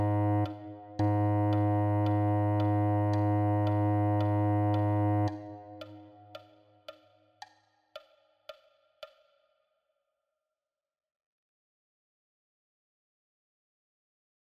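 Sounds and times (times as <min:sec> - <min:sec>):
bass clarinet: 0:00.0 - 0:05.9.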